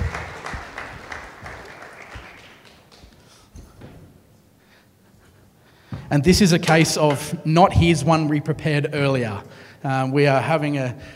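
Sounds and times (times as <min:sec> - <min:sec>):
audience round of applause: 0:00.0 - 0:03.3
speech: 0:06.1 - 0:11.1.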